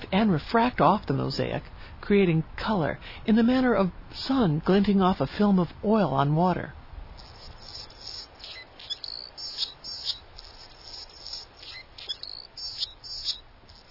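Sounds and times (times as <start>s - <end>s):
soft hiss: 0.0s - 13.8s
speech: 0.1s - 6.8s
male Anna's hummingbird song: 7.2s - 13.8s.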